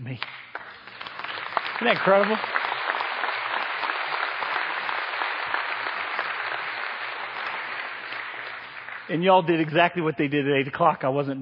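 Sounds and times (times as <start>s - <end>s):
speech: 0.1s - 0.4s, 1.8s - 2.6s, 9.1s - 11.4s
audience applause: 0.5s - 9.6s.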